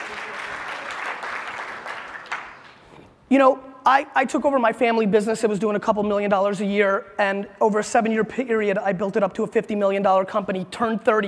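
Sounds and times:
audience clapping: 0.0 - 3.0
speech: 3.3 - 11.2.

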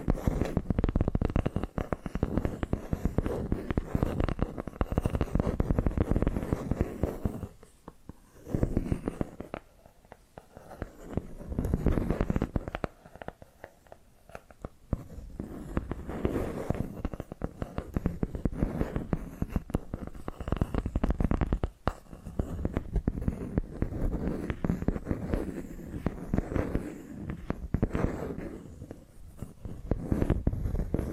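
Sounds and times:
rapid tapping and scratching: 0.0 - 31.1.

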